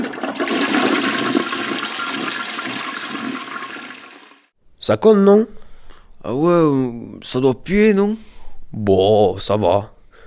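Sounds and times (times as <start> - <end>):
toilet flushing: 0.0 - 4.5
speech: 4.8 - 5.6, 6.2 - 9.9.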